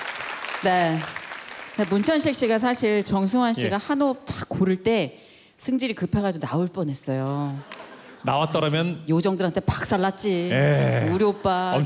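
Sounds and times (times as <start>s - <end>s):
audience applause: 0.0s - 2.4s
speech: 0.6s - 1.2s, 1.8s - 11.8s.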